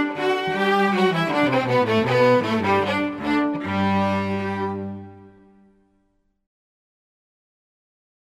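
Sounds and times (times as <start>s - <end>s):
string quartet playing a Baroque concerto: 0.0s - 5.7s.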